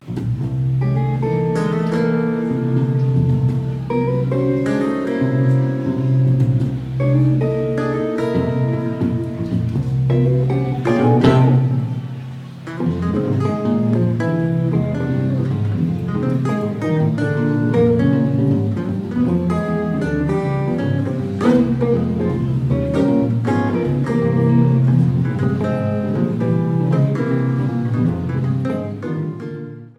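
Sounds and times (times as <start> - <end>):
guitar: 0.0 - 29.9.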